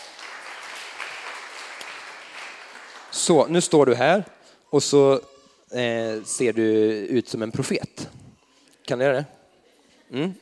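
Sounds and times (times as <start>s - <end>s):
audience applause: 0.0s - 3.8s
speech: 3.2s - 8.2s, 8.9s - 9.4s, 10.1s - 10.4s.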